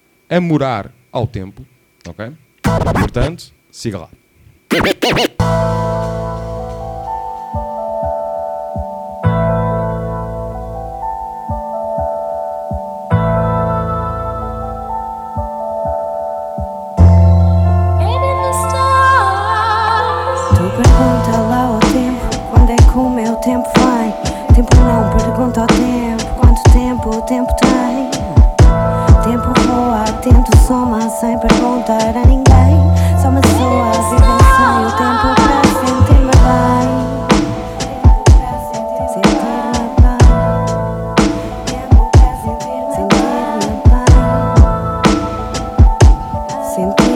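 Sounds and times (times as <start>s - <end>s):
speech: 0.3s - 6.2s, 30.7s - 32.4s
music track: 4.7s - 47.1s.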